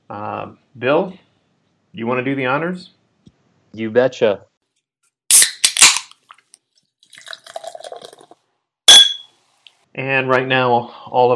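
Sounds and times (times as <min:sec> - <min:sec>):
speech: 0:00.1 - 0:01.2, 0:02.0 - 0:03.0, 0:03.7 - 0:04.5, 0:10.0 - 0:11.3
glasses clinking in a toast sound effect: 0:08.9 - 0:09.3.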